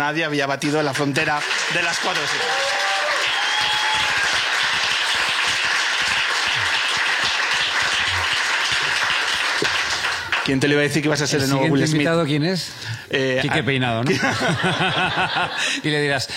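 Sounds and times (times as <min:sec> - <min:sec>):
speech: 0:00.0 - 0:02.9, 0:10.5 - 0:16.3
audience ovation with applause: 0:00.6 - 0:11.0
laughter: 0:14.0 - 0:16.3.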